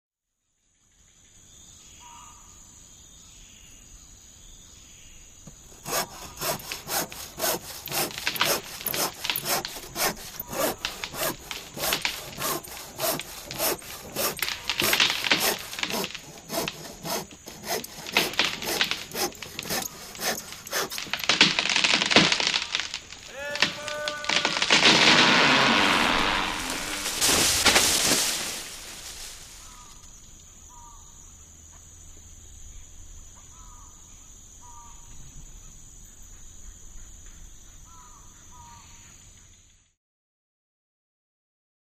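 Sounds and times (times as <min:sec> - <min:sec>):
forest ambience: 0:00.4 - 0:39.9
sawing down a tree: 0:05.4 - 0:30.2
wood creaking under stress: 0:05.5 - 0:30.1
man yelling timber: 0:23.3 - 0:24.7.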